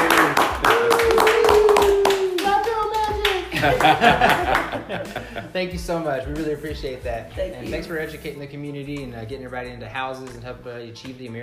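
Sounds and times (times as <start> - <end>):
round of applause: 0.0 - 4.7
laughter: 3.4 - 5.6
speech: 3.6 - 11.4.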